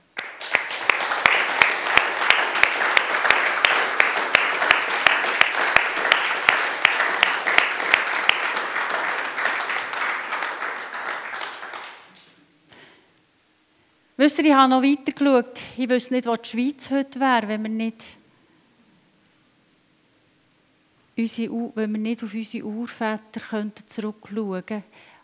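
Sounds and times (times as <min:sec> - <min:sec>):
crowd applauding: 0:00.0 - 0:12.3
speech: 0:14.3 - 0:18.2, 0:21.2 - 0:25.1.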